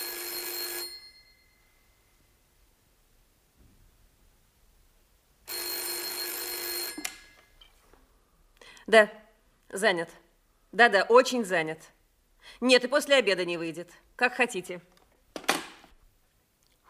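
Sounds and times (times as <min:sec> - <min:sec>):
telephone electric bell ringing: 0:00.0 - 0:01.8, 0:05.5 - 0:07.6
speech: 0:08.9 - 0:14.9.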